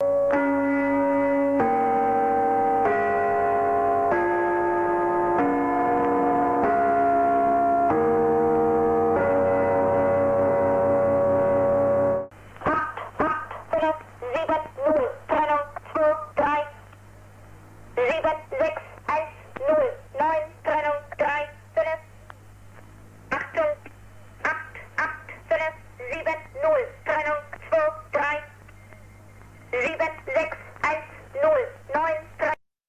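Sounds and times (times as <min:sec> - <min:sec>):
gongs in a shortwave number station broadcast: 0:00.0 - 0:12.3
Gong Station shortwave number station broadcast: 0:01.3 - 0:16.8, 0:18.0 - 0:22.2, 0:23.3 - 0:32.6.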